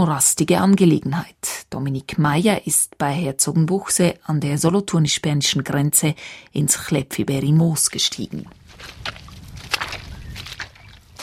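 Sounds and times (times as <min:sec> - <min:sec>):
speech: 0:00.0 - 0:09.2
rubber boots wading through shallow water in the Chläpfiberi Moos peat bog: 0:08.6 - 0:11.2.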